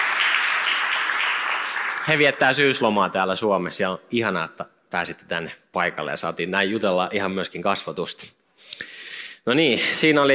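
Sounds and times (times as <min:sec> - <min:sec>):
audience applause: 0:00.0 - 0:02.8
speech: 0:02.1 - 0:10.3.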